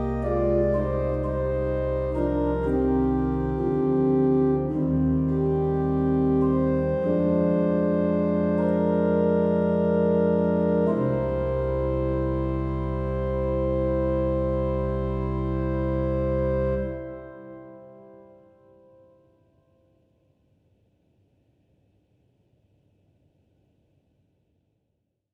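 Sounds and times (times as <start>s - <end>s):
organ improvisation in C minor: 0.0s - 18.3s.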